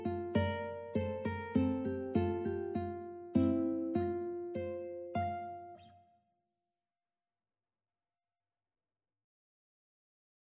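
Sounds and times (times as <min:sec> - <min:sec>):
ukulele playing: 0:00.0 - 0:05.9.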